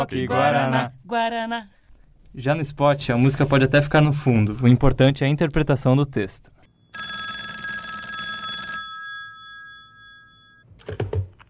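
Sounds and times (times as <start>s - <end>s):
speech: 0.0s - 7.2s
telephone bell ringing: 6.8s - 10.6s.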